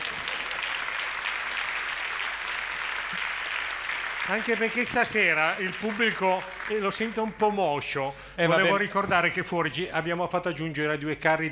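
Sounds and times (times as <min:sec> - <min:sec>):
audience applause: 0:00.0 - 0:07.3
speech: 0:04.3 - 0:11.5.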